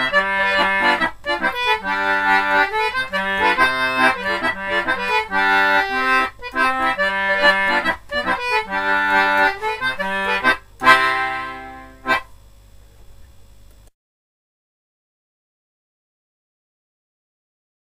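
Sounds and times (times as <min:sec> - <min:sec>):
concertina playing a schottische: 0:00.0 - 0:12.3.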